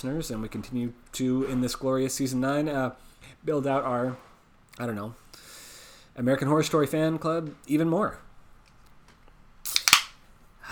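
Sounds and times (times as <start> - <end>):
speech: 0.0 - 5.5, 6.2 - 8.2
drink can being opened: 9.7 - 10.2.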